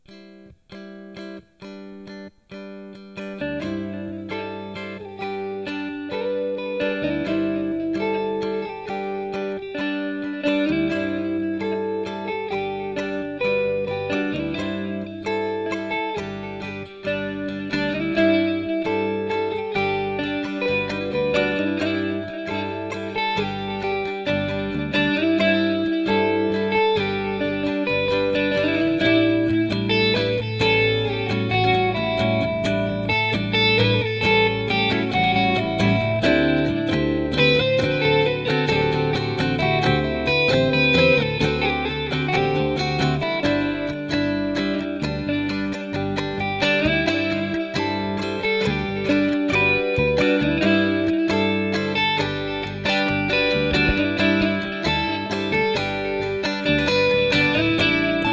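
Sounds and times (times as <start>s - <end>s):
clean electric guitar with solos: 0.0s - 58.3s.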